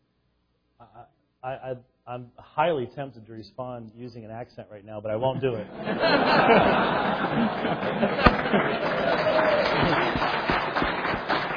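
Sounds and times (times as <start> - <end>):
speech: 0.8 - 10.4
scattered laughter: 5.7 - 10.9
audience clapping: 6.2 - 11.5.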